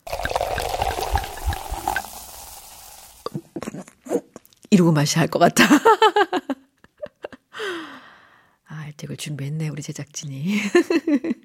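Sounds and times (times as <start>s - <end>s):
cola poured into a glass with ice: 0.0s - 3.5s
ice clinking: 0.0s - 3.5s
speech: 4.7s - 6.6s, 9.1s - 11.4s.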